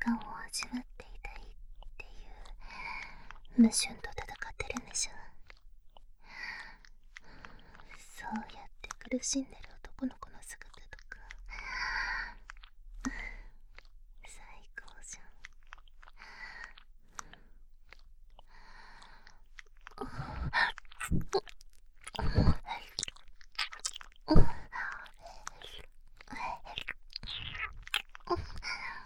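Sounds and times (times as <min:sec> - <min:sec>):
ear licking in left ear: 0:00.8 - 0:14.1, 0:14.7 - 0:29.0
breathing in left ear: 0:02.6 - 0:03.4, 0:06.2 - 0:08.0, 0:11.5 - 0:13.7, 0:16.2 - 0:17.7, 0:18.4 - 0:19.4, 0:20.0 - 0:20.6.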